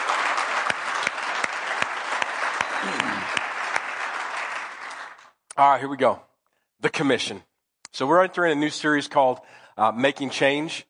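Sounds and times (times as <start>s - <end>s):
audience round of applause: 0.0s - 5.3s
speech: 5.6s - 10.8s.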